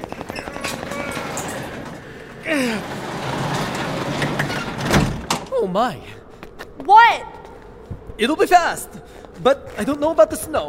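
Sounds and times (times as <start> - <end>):
garage door being lifted open: 0.3 - 5.5
speech: 2.5 - 3.0, 5.6 - 6.2, 6.9 - 7.3, 8.2 - 10.6.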